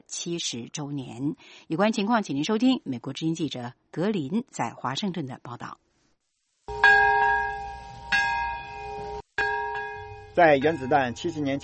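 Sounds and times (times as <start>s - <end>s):
speech: 0.1s - 5.8s, 10.4s - 11.6s
memorial bell ringing in Nagasaki Peace Park: 6.7s - 11.6s.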